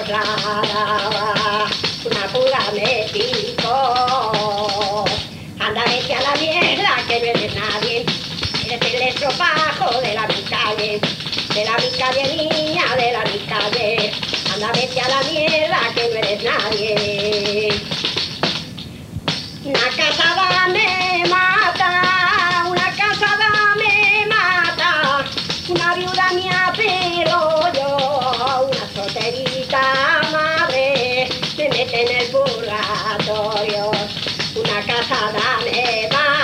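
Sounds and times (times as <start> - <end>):
jota folk dance music from Fresno el Viejo: 0.0 - 36.4.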